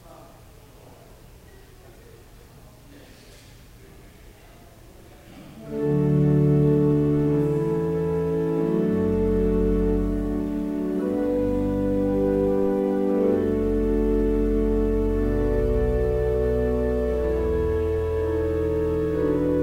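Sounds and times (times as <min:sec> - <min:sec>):
organ music: 0:05.6 - 0:19.6.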